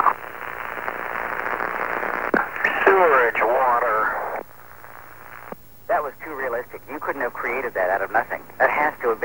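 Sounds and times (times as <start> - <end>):
CB radio static hiss: 0.0 - 9.2
speech: 6.5 - 9.2.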